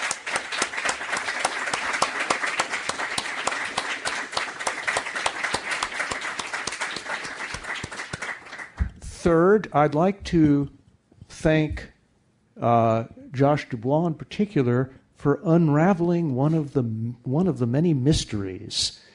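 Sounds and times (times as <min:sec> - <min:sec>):
audience applause: 0:00.0 - 0:08.8
speech: 0:09.2 - 0:10.8, 0:11.4 - 0:11.9, 0:12.6 - 0:19.0.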